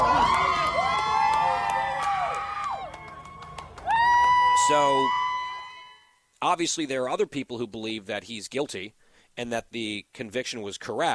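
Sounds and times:
crowd of supporters cheering outside a courthouse: 0.0 - 6.1
speech: 4.7 - 5.2, 6.4 - 11.1.

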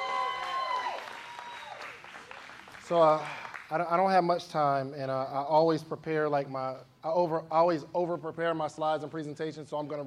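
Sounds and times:
audience applause: 0.0 - 3.7
speech: 2.9 - 10.0.

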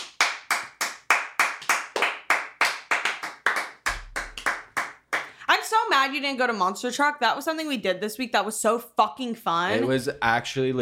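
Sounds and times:
people clapping for a birthday: 0.0 - 5.4
speech: 6.0 - 10.8.

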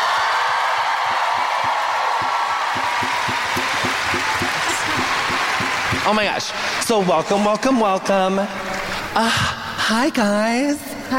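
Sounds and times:
audience applause at a live show welcoming a guest: 0.0 - 8.4
speech: 6.1 - 11.1.

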